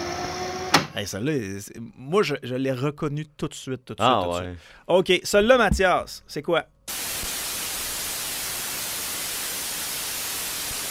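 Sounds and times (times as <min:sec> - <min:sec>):
speech: 0:01.0 - 0:07.1
television static after the signal drops out: 0:06.9 - 0:10.8.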